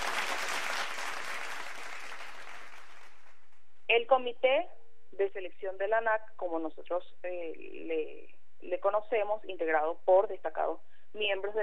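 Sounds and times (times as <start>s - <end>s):
audience applause: 0.0s - 3.4s
speech: 4.0s - 11.6s.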